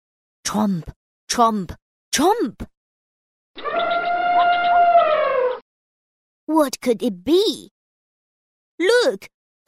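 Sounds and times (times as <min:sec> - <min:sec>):
speech: 0:00.5 - 0:02.8, 0:06.5 - 0:07.8, 0:08.8 - 0:09.6
elephant trumpeting: 0:03.6 - 0:05.6.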